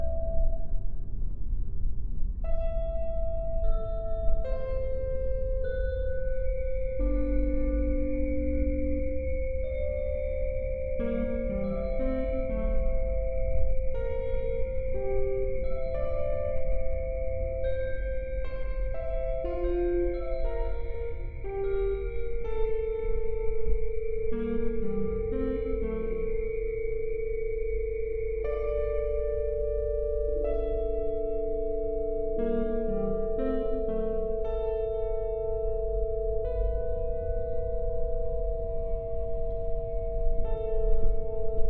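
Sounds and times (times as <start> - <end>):
simple computer-generated piano melody of an old song: 0.0 - 1.0, 2.4 - 41.6
low rumble like ocean surf or a passing train: 0.0 - 41.6
sustained tones: 5.1 - 41.6
long high whistling sine tone: 6.0 - 30.2.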